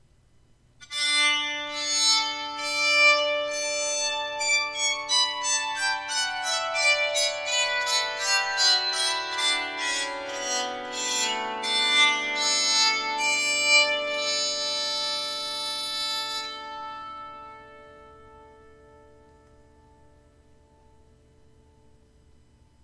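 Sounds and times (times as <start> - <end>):
bowed psaltery playing a scale: 0.8 - 21.1.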